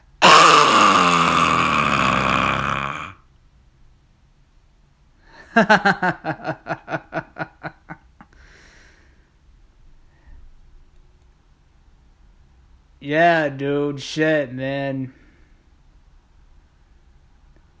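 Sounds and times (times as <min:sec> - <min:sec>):
person imitating phlegm with gurgling throat-clearing: 0:00.0 - 0:03.2
speech: 0:05.6 - 0:07.0, 0:13.1 - 0:15.2.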